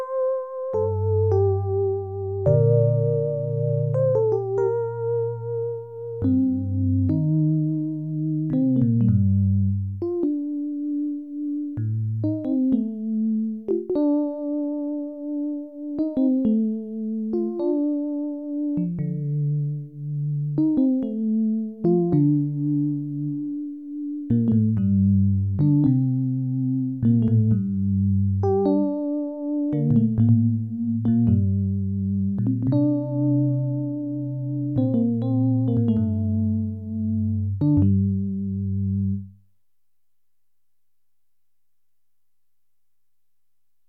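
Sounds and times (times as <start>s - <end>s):
synthesizer: 0.0s - 39.3s.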